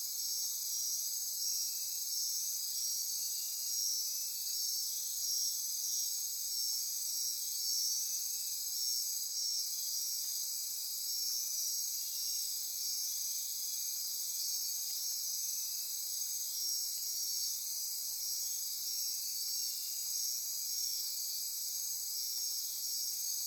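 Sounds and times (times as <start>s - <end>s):
insect chorus: 0.0s - 23.4s.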